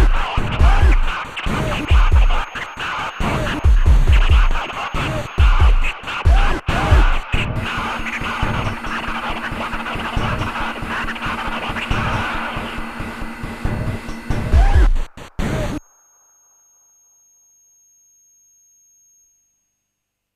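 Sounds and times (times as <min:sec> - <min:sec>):
high pitched scratch noise: 0:00.2 - 0:15.8.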